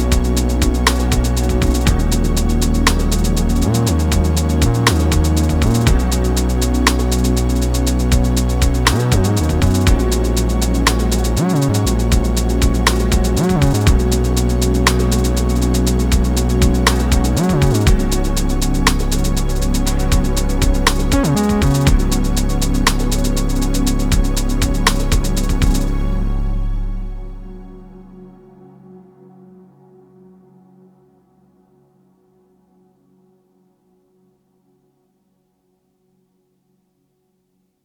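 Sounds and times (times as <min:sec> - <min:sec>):
trap music: 0:00.0 - 0:28.0.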